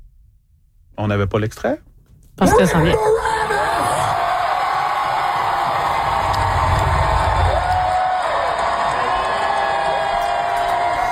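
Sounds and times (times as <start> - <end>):
speech: 1.0 - 3.4
Comic-Con convention crowd cheering an announced guest: 2.5 - 11.1.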